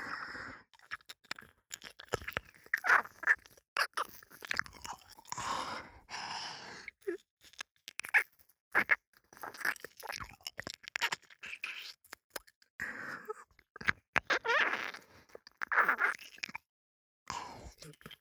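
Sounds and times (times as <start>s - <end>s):
ear licking sounds: 0.7s - 5.7s, 6.7s - 12.6s, 13.5s - 16.6s, 17.7s - 18.2s.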